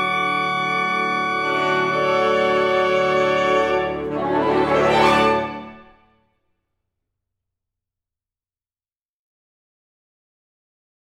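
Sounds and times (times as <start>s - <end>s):
fanfare: 0.0s - 6.2s.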